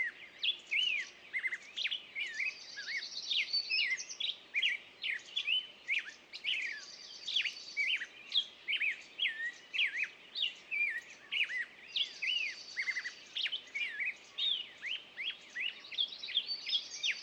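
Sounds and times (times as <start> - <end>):
birds in the morning on a meadow: 0.0 - 17.2.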